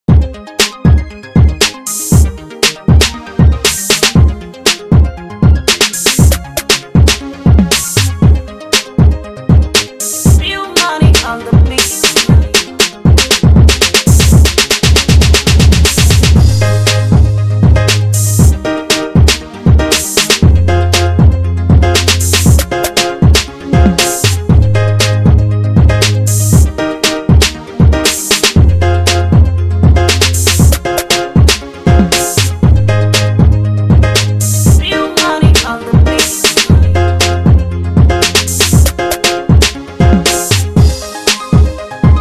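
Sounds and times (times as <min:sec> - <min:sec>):
music beat: 0:00.1 - 0:42.1.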